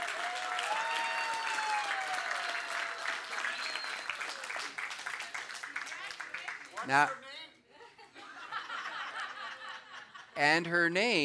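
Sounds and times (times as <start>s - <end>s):
high cheering voices: 0.0s - 4.8s
audience clapping: 0.0s - 7.2s
speech: 6.9s - 7.3s, 10.4s - 11.2s
laughter: 7.7s - 10.4s.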